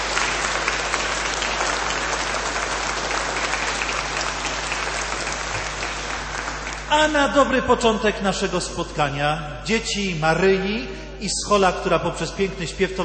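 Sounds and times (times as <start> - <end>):
audience applause: 0.0 - 7.3
speech: 6.9 - 13.0.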